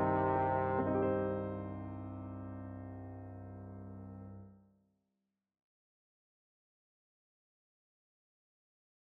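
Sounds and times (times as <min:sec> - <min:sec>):
trombone: 0:00.0 - 0:02.5.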